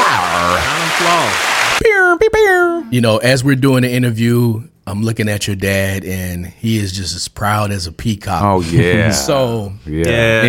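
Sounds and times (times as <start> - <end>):
round of applause: 0.0 - 1.8
speech: 2.9 - 10.4.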